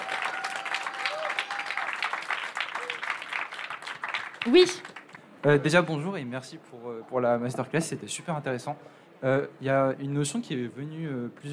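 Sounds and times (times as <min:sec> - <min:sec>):
crowd applauding: 0:00.0 - 0:05.3
speech: 0:04.4 - 0:11.5.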